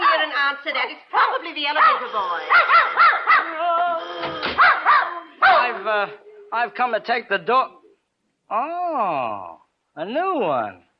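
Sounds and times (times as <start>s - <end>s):
speech: 0.4s - 7.8s, 8.5s - 10.8s
dog barking: 1.8s - 3.6s, 4.6s - 5.8s.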